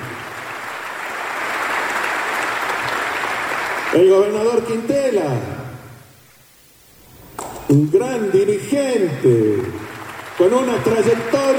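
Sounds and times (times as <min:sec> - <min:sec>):
crowd applause: 0:00.0 - 0:04.6, 0:08.5 - 0:11.5
speech: 0:03.9 - 0:05.6, 0:07.7 - 0:09.8, 0:10.4 - 0:11.5.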